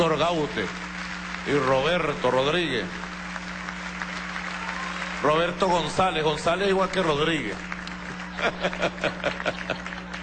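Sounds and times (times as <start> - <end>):
speech: 0.0 - 3.1, 5.2 - 7.7, 8.4 - 10.0
audience applause: 0.0 - 10.2
low electrical hum: 0.0 - 10.2
laughter: 8.0 - 10.2.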